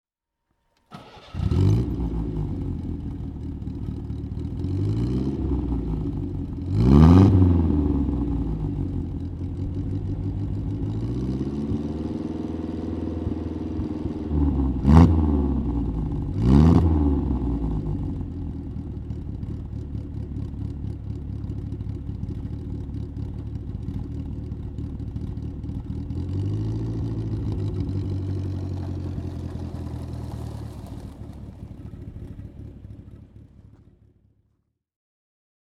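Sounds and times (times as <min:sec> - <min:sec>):
Facel Vega Facellia car: 0:00.5 - 0:34.8.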